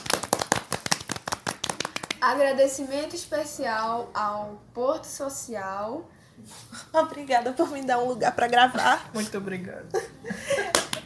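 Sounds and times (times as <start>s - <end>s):
several people clapping: 0.0s - 2.2s, 10.6s - 11.0s
speech: 2.2s - 10.8s
laughter: 9.9s - 11.0s.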